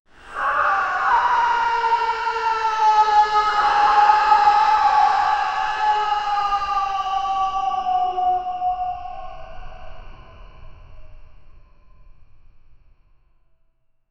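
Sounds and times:
chilling animal cry: 0.3s - 8.6s.

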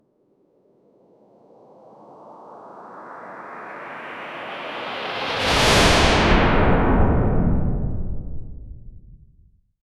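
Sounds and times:
air strike build-up: 5.3s - 9.6s.

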